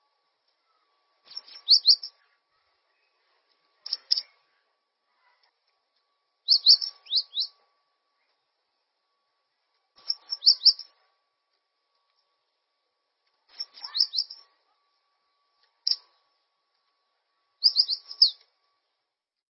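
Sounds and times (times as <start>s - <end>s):
bird song of fast high chirps and trills: 0.6s - 4.5s, 6.4s - 7.6s, 10.0s - 11.0s, 13.5s - 14.6s, 15.3s - 16.4s, 17.6s - 18.5s.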